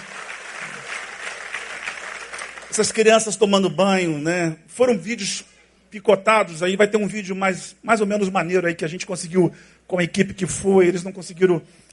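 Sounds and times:
audience applauding: 0.0s - 3.1s
speech: 2.7s - 11.9s.

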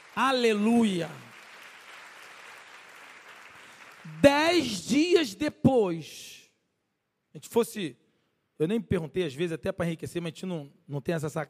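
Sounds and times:
audience applauding: 0.0s - 5.0s
speech: 0.2s - 1.3s, 4.2s - 6.4s, 7.4s - 8.0s, 8.6s - 11.4s.

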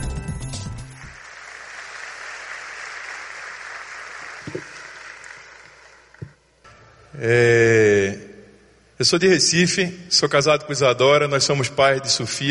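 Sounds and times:
applause: 0.7s - 6.4s
speech: 7.2s - 7.9s, 9.0s - 12.4s.

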